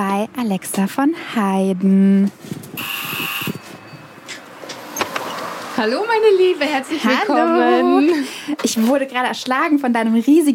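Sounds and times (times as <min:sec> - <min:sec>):
speech: 0:00.0 - 0:03.5, 0:05.8 - 0:10.5
doorbell ringing: 0:02.8 - 0:04.2.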